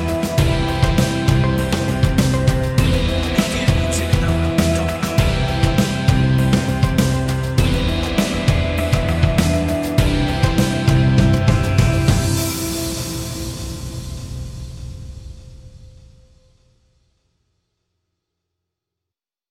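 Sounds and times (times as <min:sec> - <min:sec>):
music without strings: 0:00.0 - 0:15.4.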